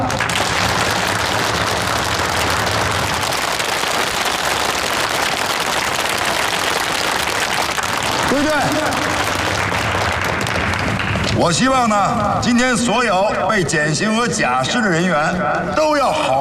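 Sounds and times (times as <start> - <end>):
applause: 0.0 - 11.6
speech: 11.4 - 16.3.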